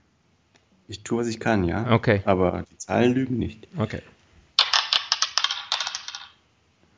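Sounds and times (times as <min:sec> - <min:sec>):
speech: 0:00.9 - 0:04.2
dice being rolled: 0:04.6 - 0:06.4.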